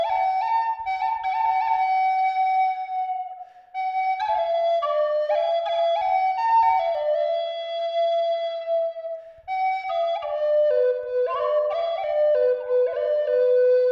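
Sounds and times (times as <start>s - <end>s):
Eastern red cedar flute playing high C at 432 Hz: 0.0s - 13.9s.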